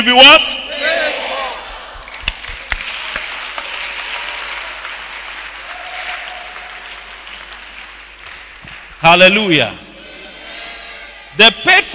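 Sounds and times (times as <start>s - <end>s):
speech: 0.0s - 1.0s, 9.1s - 9.8s, 11.4s - 11.9s
audience clapping: 2.0s - 9.3s.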